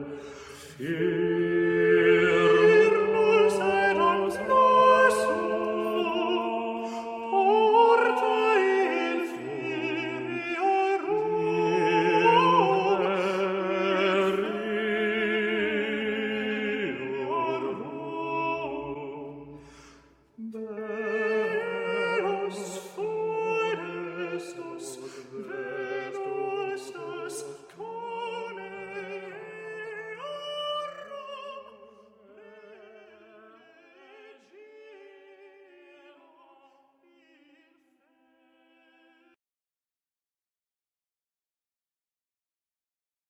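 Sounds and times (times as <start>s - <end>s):
person singing: 0.6s - 19.4s, 20.4s - 34.2s.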